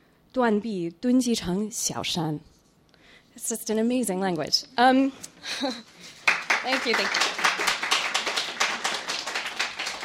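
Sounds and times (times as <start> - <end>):
speech: 0.4 - 2.5, 3.4 - 5.9, 6.6 - 7.3
audience applause after a poetry reading: 6.2 - 10.0.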